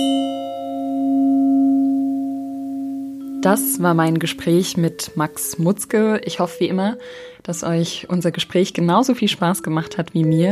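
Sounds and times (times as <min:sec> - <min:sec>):
wine glasses clinked in a toast ringing: 0:00.0 - 0:07.0
speech: 0:03.4 - 0:10.5.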